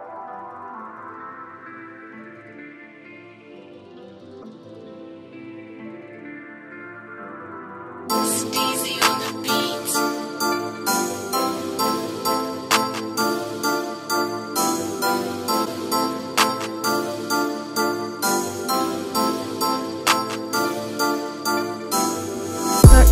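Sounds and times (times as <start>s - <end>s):
music beat: 8.1s - 23.1s.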